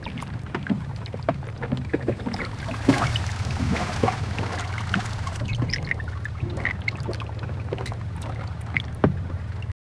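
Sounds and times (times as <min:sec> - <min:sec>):
oars: 0:00.0 - 0:09.7
water lapping against something: 0:00.0 - 0:09.7.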